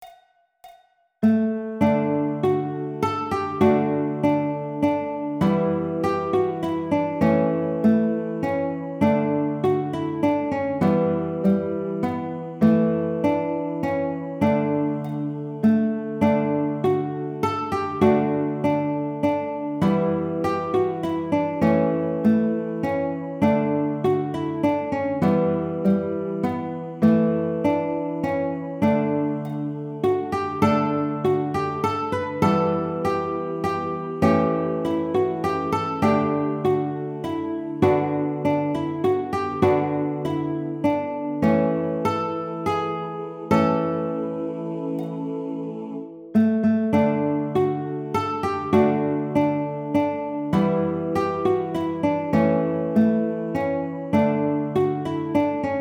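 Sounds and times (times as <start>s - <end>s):
baritone ukulele: 1.2s - 55.7s.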